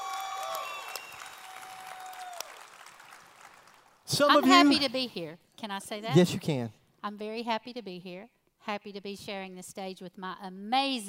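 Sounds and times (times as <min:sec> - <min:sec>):
audience applause welcoming a guest onto a stage: 0:00.0 - 0:04.0
speech: 0:04.1 - 0:11.0.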